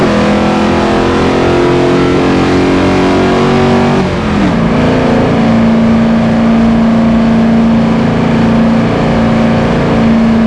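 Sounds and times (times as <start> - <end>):
vehicles cruising: 0.0 - 10.4.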